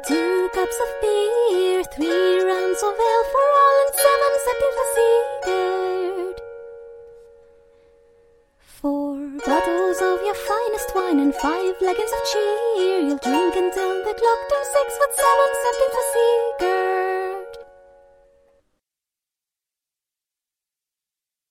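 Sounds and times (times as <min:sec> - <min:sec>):
lute playing: 0:00.0 - 0:07.9, 0:09.2 - 0:18.4.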